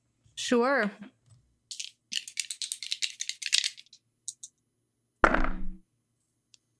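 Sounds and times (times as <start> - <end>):
dice rattling in a cup or hand: 1.7 - 4.5.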